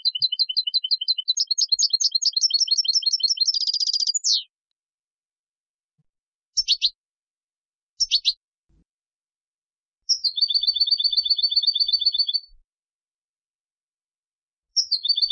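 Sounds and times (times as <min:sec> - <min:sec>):
European goldfinch Carduelis carduelis singing with twittering bursts and trills: 0:00.0 - 0:04.5, 0:06.6 - 0:07.0, 0:08.0 - 0:08.4, 0:10.1 - 0:12.6, 0:14.8 - 0:15.3.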